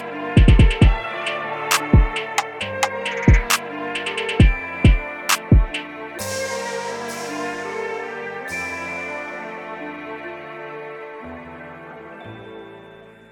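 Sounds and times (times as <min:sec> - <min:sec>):
trap version music: 0:00.0 - 0:09.5.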